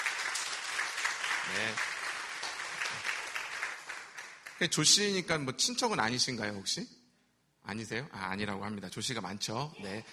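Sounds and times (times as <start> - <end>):
audience applause: 0.0 - 5.1
speech: 1.5 - 1.9, 4.6 - 7.0, 7.7 - 10.1.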